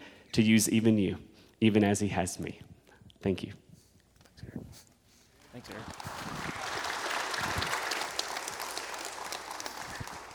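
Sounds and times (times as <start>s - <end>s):
speech: 0.4s - 3.6s, 5.6s - 6.3s
crowd clapping: 5.4s - 10.3s.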